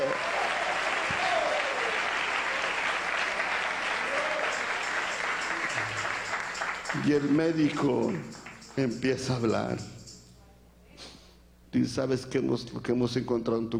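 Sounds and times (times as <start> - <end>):
audience clapping: 0.0 - 10.2
speech: 7.0 - 9.9, 11.8 - 13.7.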